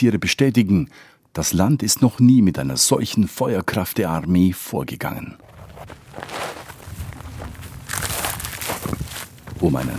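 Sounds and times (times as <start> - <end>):
speech: 0.0 - 6.6, 9.6 - 9.9
footsteps marching over brush: 5.4 - 9.9.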